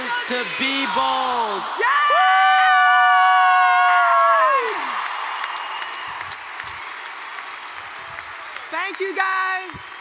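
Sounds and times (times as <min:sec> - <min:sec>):
audience cheering: 0:00.0 - 0:09.9
speech: 0:00.3 - 0:02.3, 0:09.0 - 0:09.9
audience clapping: 0:02.7 - 0:09.9.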